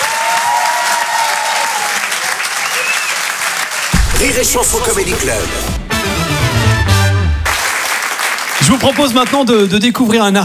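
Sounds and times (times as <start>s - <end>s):
faint whistle or cheer: 0.0s - 4.0s
audience applause: 0.0s - 10.2s
speech: 4.2s - 5.8s, 8.7s - 10.4s.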